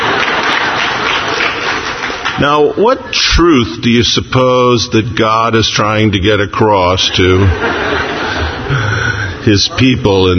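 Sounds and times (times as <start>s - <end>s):
laughter: 0.0s - 2.2s, 7.0s - 10.3s
audience applauding: 0.0s - 2.7s
speech: 2.4s - 8.1s, 8.7s - 10.3s.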